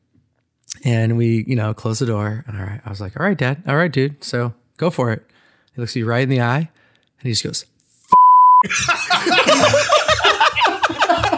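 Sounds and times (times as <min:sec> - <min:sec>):
speech: 0:00.8 - 0:07.7, 0:08.6 - 0:09.9
censor bleep over swear word: 0:08.1 - 0:08.6
laughter: 0:08.6 - 0:11.3.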